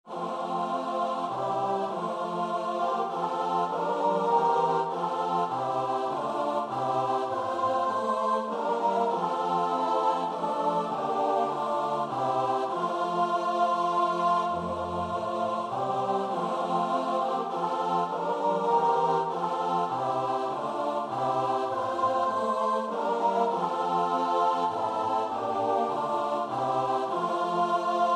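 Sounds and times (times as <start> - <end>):
choir singing alleluia: 0.0 - 28.1.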